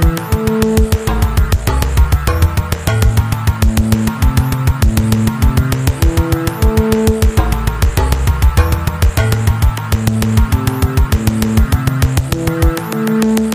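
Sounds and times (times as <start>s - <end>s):
retro boss fight music loop: 0.0s - 13.5s.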